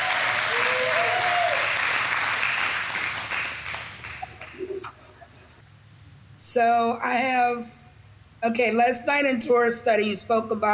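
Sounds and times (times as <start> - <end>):
audience clapping: 0.0 - 5.0
speech: 6.6 - 7.8, 8.4 - 10.7.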